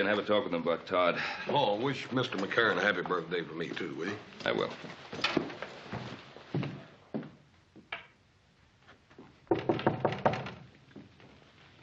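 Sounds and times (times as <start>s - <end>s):
speech: 0.0s - 5.6s
knuckles knocking on a wooden door: 9.5s - 10.6s.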